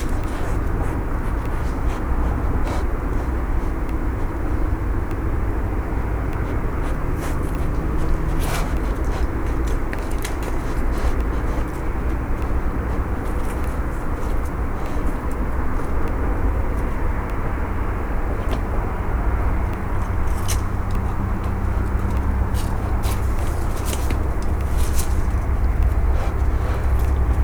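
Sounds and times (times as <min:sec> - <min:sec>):
spotted hyena sniffing intensely: 0:00.0 - 0:27.4.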